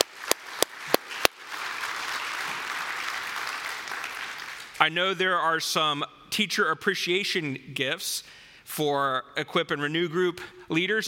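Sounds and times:
audience applause: 0.0s - 4.8s
speech: 4.8s - 11.0s.

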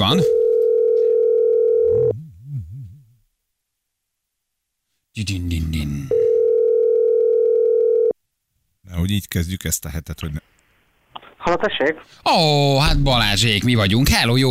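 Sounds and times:
speech: 0.1s - 0.4s, 5.2s - 6.4s, 8.9s - 10.6s, 11.4s - 14.4s
telephone dial tone while a radio show calls a listener: 0.3s - 2.1s, 6.1s - 8.2s.

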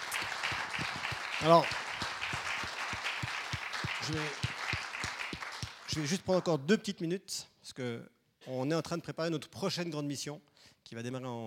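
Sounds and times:
audience applause: 0.0s - 6.5s
speech: 1.4s - 1.8s, 4.1s - 4.4s, 6.0s - 11.4s.

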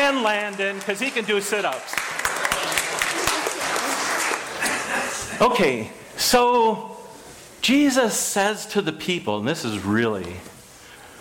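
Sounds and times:
round of applause: 0.0s - 4.7s
speech: 0.2s - 2.3s, 5.1s - 7.0s, 7.6s - 10.5s.

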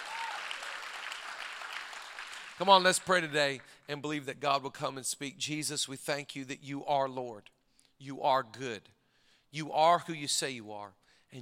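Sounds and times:
audience clapping: 0.0s - 3.8s
speech: 2.6s - 11.4s.

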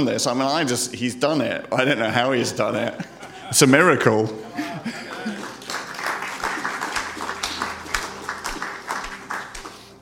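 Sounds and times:
speech: 0.0s - 5.0s
people chuckling: 2.8s - 9.3s
church congregation applauding in welcome: 4.4s - 10.0s.

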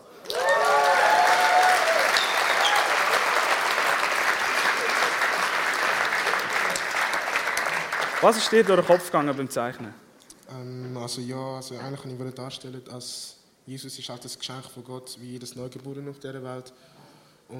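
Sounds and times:
audience applause: 0.0s - 9.5s
speech: 8.2s - 17.5s.

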